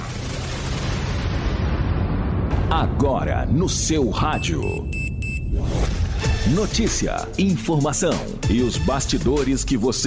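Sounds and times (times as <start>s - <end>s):
explosion sound effect in a radio news jingle: 0.0s - 3.1s
speech: 2.7s - 10.0s.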